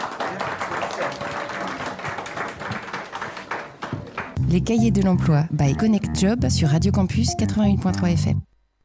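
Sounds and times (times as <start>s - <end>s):
audience applauding guests: 0.0s - 4.4s
speech: 4.5s - 8.4s.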